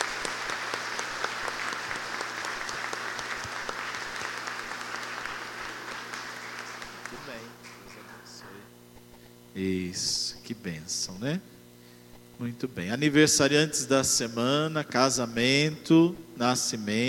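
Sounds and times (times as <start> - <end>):
audience applause: 0.0 - 8.3
low steady hum: 0.0 - 17.0
speech: 7.3 - 7.8, 9.6 - 11.5, 12.4 - 17.0.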